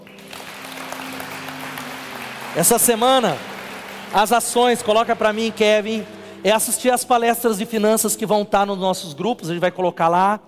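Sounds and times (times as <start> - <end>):
audience applause: 0.0 - 6.8
speech: 2.6 - 3.5, 4.1 - 10.4.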